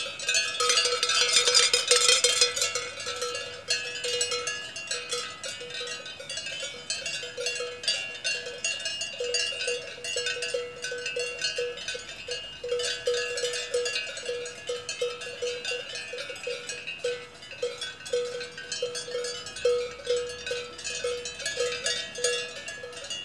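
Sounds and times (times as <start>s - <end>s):
large cowbells in Switzerland: 0.0s - 23.2s.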